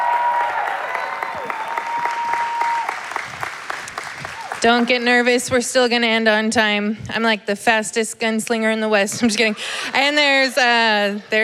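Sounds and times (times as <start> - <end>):
audience applause at a church women's event: 0.0 - 5.2
speech: 4.6 - 11.4.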